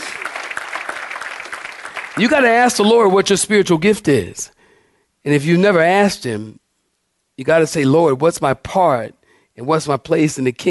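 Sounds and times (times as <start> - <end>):
audience clapping hands: 0.0 - 3.1
speech: 2.2 - 4.6, 5.2 - 6.6, 7.4 - 10.6.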